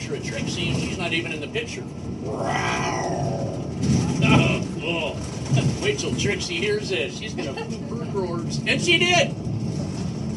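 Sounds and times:
speech: 0:00.1 - 0:09.5
growl heard in recording playback: 0:02.3 - 0:04.2.

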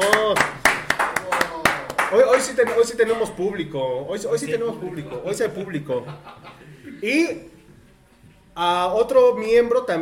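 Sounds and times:
applause from studio audience: 0:00.0 - 0:03.0
speech: 0:02.2 - 0:07.5, 0:08.6 - 0:10.0
laughter: 0:05.9 - 0:07.0.

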